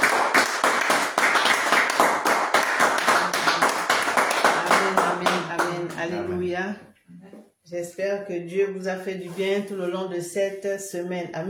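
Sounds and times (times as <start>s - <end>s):
congregation clapping in unison during a thanksgiving worship service: 0.0s - 6.1s
speech: 6.1s - 11.4s.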